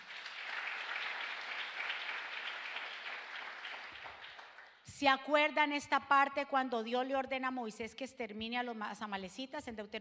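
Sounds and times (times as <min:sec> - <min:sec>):
audience applause: 0:00.0 - 0:04.8
speech: 0:05.0 - 0:09.9.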